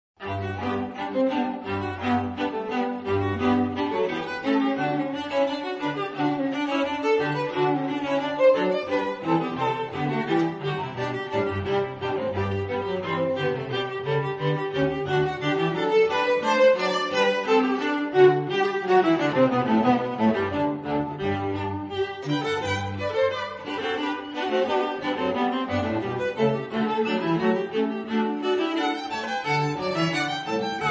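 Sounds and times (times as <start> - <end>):
string trio playing: 0.2 - 30.8.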